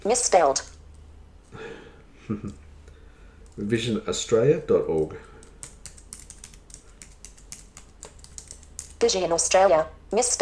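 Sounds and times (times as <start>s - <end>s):
speech: 0.0s - 0.7s, 2.3s - 2.6s, 3.6s - 5.3s, 9.0s - 10.3s
computer keyboard clicking as a web address is typed: 4.9s - 9.1s.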